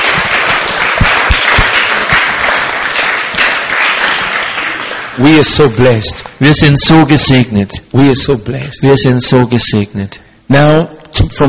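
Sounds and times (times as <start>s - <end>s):
audience applause at a bilingual church service: 0.0s - 6.4s
speech: 5.2s - 11.4s.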